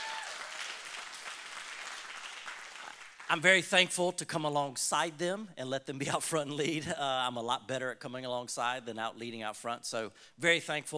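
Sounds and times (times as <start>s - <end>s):
audience applause: 0.0s - 3.4s
speech: 3.3s - 10.9s.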